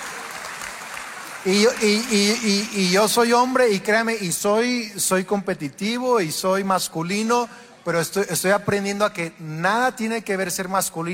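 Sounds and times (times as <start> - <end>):
women in an audience applauding during a talk: 0.0 - 3.3
speech: 1.4 - 11.1.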